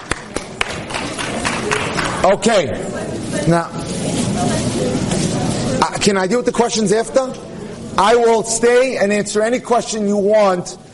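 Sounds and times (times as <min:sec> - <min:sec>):
audience applause: 0:00.0 - 0:02.2
speech: 0:02.2 - 0:05.1, 0:05.8 - 0:07.4, 0:08.0 - 0:10.8.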